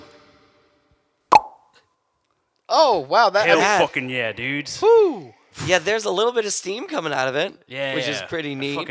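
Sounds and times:
cork popping out of a cork gun: 0:01.3 - 0:01.7
speech: 0:02.7 - 0:08.8.

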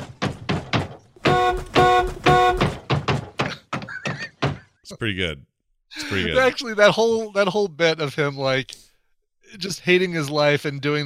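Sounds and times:
man beating on a car: 0:00.0 - 0:04.8
speech: 0:04.9 - 0:08.8, 0:09.5 - 0:11.0.

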